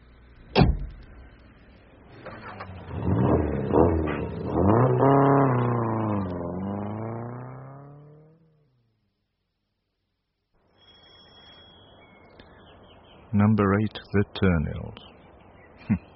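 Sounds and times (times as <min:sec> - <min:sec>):
car driving and accelerating: 0:00.0 - 0:09.0
speech: 0:13.4 - 0:15.1.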